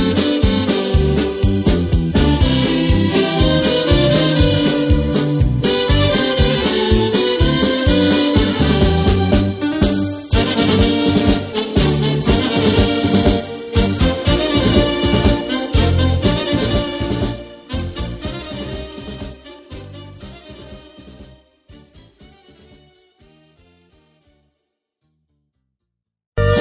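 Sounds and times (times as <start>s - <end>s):
flamenco music: 0.0s - 20.2s, 26.4s - 26.6s.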